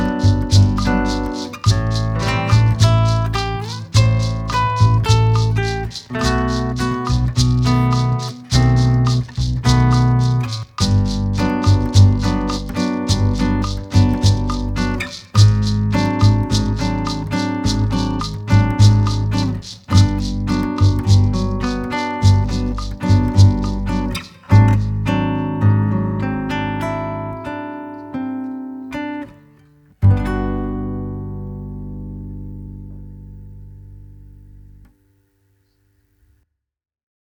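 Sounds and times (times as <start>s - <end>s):
bossa nova music: 0.0s - 27.8s.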